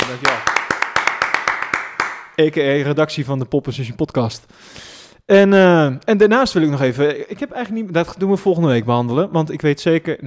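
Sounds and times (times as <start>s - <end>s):
hand clapping: 0.0s - 2.4s
speech: 0.1s - 0.4s, 2.4s - 10.2s.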